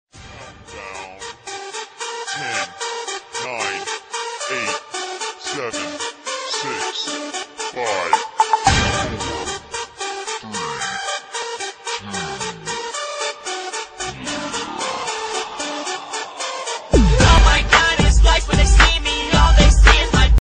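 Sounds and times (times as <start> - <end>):
hip hop music: 1.2 - 10.4, 11.0 - 20.3.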